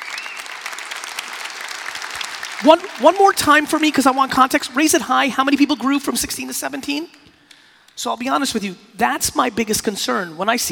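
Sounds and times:
audience clapping: 0.0s - 5.0s
speech: 2.6s - 7.3s, 8.0s - 10.7s.

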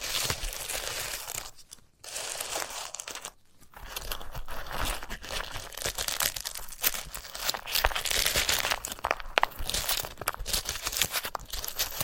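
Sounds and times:
dried sunflower head crinkling and crunching: 0.0s - 12.0s.

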